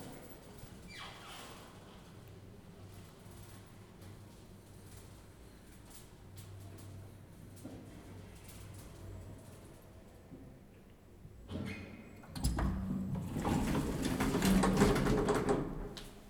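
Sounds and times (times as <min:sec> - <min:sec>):
elevator: 0:11.6 - 0:16.1.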